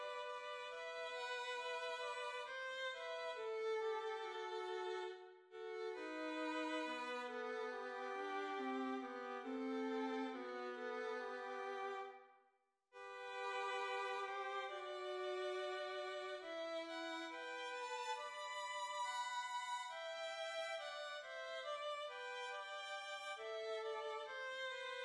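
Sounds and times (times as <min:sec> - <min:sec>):
violins playing: 0:00.0 - 0:12.0, 0:13.0 - 0:25.0.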